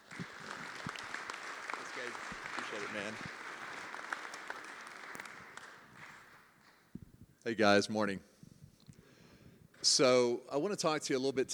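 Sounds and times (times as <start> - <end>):
faint applause welcoming a speaker: 0.0 - 6.6
speech: 2.8 - 3.4, 7.4 - 8.3, 9.8 - 11.5.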